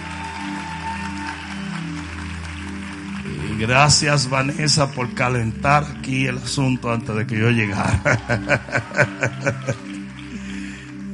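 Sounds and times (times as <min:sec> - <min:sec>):
audience applause: 0:00.0 - 0:11.1
speech: 0:03.6 - 0:09.9
laughter: 0:07.5 - 0:10.8.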